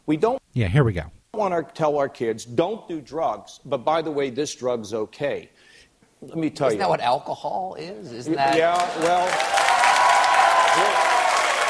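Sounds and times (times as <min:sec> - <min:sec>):
speech: 0:00.1 - 0:09.7
crowd cheering: 0:08.4 - 0:11.6.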